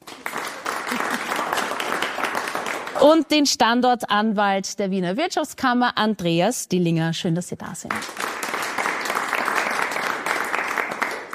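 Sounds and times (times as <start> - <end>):
audience applause: 0.0 - 3.0, 8.0 - 11.3
speech: 3.0 - 8.2.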